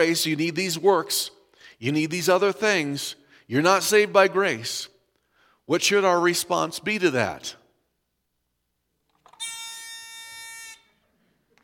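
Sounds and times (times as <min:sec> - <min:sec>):
speech: 0:00.0 - 0:04.9, 0:05.7 - 0:07.6
handheld novelty buzzer: 0:09.4 - 0:11.0.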